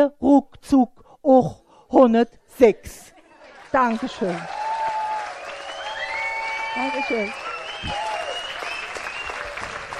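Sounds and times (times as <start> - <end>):
speech: 0.0 - 3.1, 3.7 - 4.6, 6.8 - 8.1
audience applause for a performer on stage: 3.3 - 9.9
faint whistle-like tones: 5.6 - 9.6.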